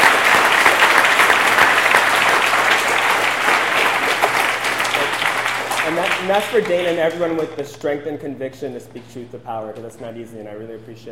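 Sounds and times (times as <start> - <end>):
crowd applauding: 0.0 - 7.6
speech: 6.3 - 11.1.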